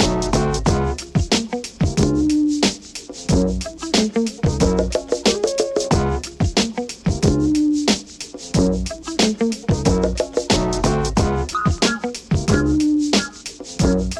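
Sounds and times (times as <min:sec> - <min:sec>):
instrumental music: 0:00.0 - 0:14.1.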